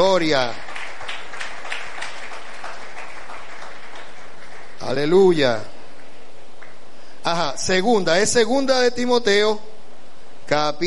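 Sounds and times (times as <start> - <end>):
speech: 0.0 - 0.6, 4.8 - 5.7, 7.2 - 9.7, 10.5 - 10.8
audience applauding: 0.0 - 5.4.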